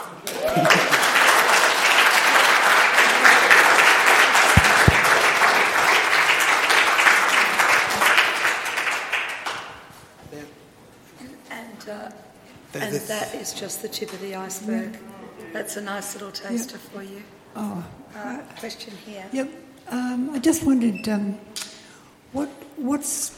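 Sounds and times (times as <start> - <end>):
audience clapping: 0.0 - 9.9
speech: 13.1 - 21.5, 22.3 - 23.3.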